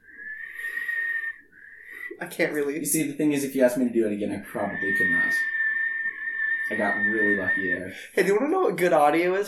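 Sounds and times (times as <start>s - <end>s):
person whistling into the mic: 0.0s - 2.2s, 4.5s - 7.9s
speech: 2.2s - 5.6s, 6.7s - 9.4s.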